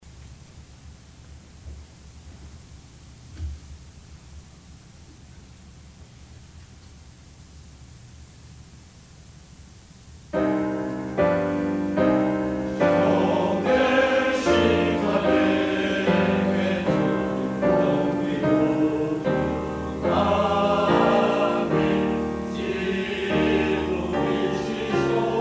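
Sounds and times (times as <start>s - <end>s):
choir singing: 10.7s - 25.3s.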